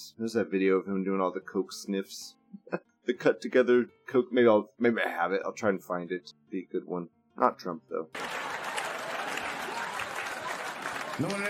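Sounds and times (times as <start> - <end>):
speech: 0.2 - 8.4, 11.2 - 11.4
audience standing ovation applause: 8.2 - 11.4
faint murmur of crowd noise: 8.2 - 11.4.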